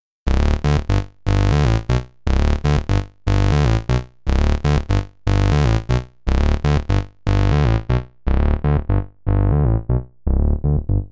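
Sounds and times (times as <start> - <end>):
Studio Electronics Tonestar 2600 oscillator mix through filter: 0.3 - 11.0.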